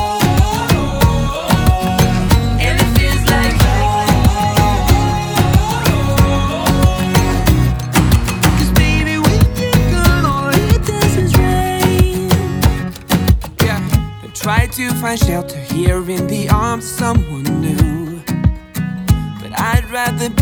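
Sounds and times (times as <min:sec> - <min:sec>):
acoustic version of a song: 0:00.0 - 0:20.4.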